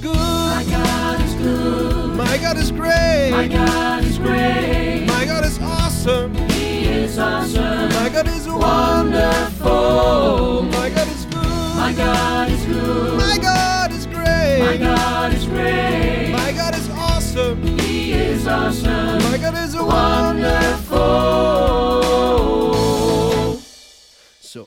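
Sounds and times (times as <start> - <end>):
gospel choir singing: 0.2 - 23.7.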